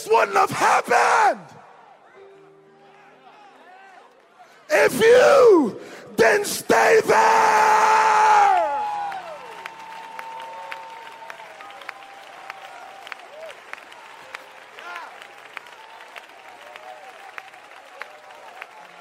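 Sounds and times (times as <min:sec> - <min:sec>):
speech: 0:00.0 - 0:01.6, 0:04.7 - 0:08.5
audience clapping: 0:08.1 - 0:18.9.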